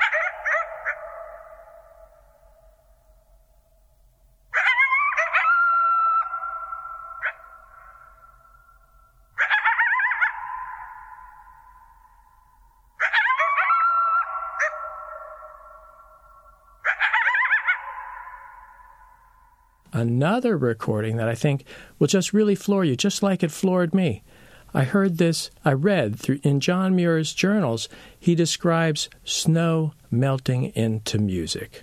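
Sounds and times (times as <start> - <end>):
coyotes yipping and howling in the open: 0.0 - 3.0, 4.5 - 19.8
speech: 20.0 - 31.8.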